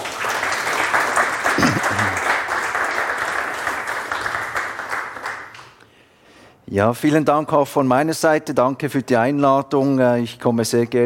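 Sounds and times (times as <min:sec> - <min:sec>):
audience applause: 0:00.0 - 0:05.8
speech: 0:06.7 - 0:11.0.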